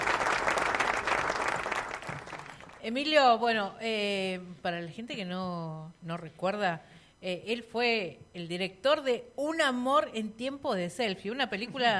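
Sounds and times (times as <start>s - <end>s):
studio audience applause greeting a film director guest on a talk show: 0.0s - 2.8s
speech: 2.8s - 11.9s.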